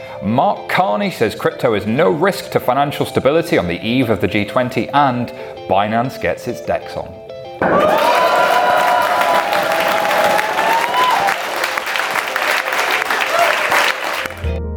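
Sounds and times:
speech: 0.2 - 8.2
live audience applause and cheering: 7.6 - 14.6
shrill whistles: 8.0 - 11.8.

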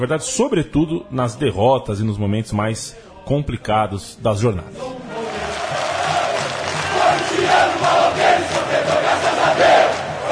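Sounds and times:
speech: 0.0 - 5.0
football supporters chanting a cry: 4.7 - 10.3
rhythmic pulses: 4.8 - 10.3.

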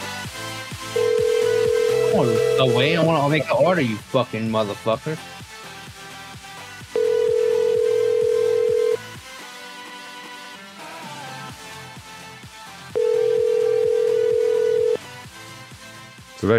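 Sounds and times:
telephone ringback tone on an unanswered call: 0.9 - 3.7, 7.0 - 9.0, 13.0 - 15.0
speech: 2.2 - 5.3.

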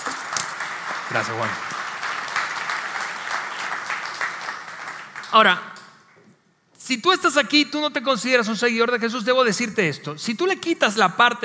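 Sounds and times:
audience applause: 0.0 - 5.7
speech: 1.1 - 1.7, 5.3 - 5.7, 6.9 - 11.4.

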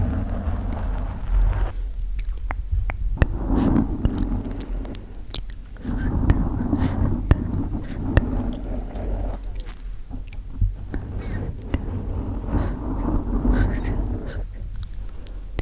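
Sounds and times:
mic scratching: 0.0 - 15.6
steady low rumble: 0.0 - 15.6
gentle mouth sounds: 1.9 - 15.6.

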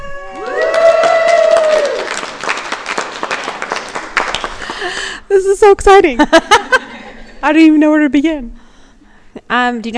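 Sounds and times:
group in Iceland whooping: 0.0 - 2.5
scattered clapping and cheers: 0.1 - 5.0
speech: 5.4 - 6.6, 7.4 - 8.6, 9.5 - 9.9.

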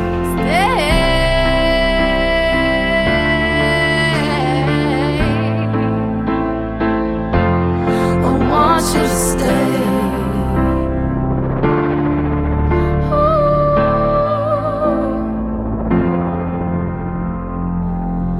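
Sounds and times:
slow pop song on the radio: 0.0 - 18.3.

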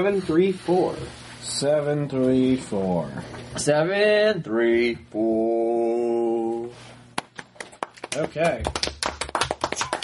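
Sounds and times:
speech: 0.0 - 5.9, 8.2 - 8.8
clapping sound played from a phone: 7.2 - 10.0.

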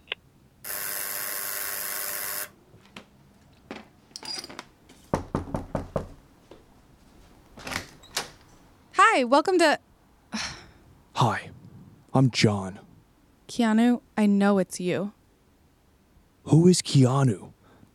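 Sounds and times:
apartment electric door buzzer: 0.6 - 2.6
speech: 9.2 - 10.5, 12.2 - 12.9, 13.5 - 15.2, 16.4 - 17.9.

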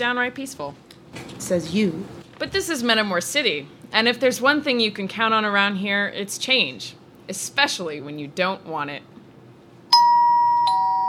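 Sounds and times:
speech: 0.0 - 9.1
doorbell chiming: 9.9 - 11.0.

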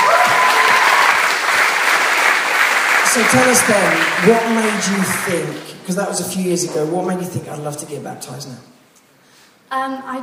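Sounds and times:
audience applause: 0.0 - 6.2
speech: 3.2 - 8.8, 9.7 - 10.2.

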